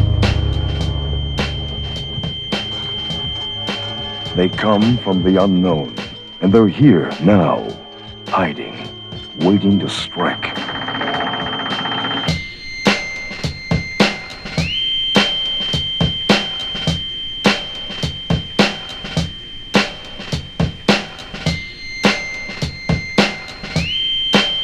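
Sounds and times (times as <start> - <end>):
rap instrumental: 0.2 - 24.6.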